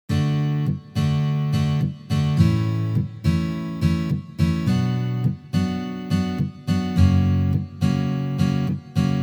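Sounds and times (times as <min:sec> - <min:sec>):
guitar strumming: 0:00.1 - 0:09.2.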